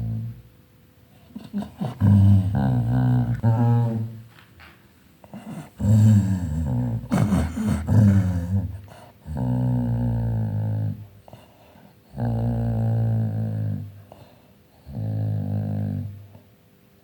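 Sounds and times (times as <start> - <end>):
angry-sounding dog growling while playing: 0.0 - 0.4, 1.2 - 4.3, 5.2 - 11.5, 12.1 - 14.1, 14.8 - 16.2.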